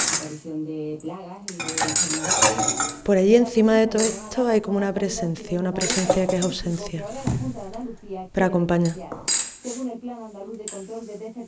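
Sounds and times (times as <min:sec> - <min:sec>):
speech: 0:00.2 - 0:11.4
clattering forks spoons and knives: 0:01.5 - 0:09.4
toilet cistern: 0:01.6 - 0:09.4.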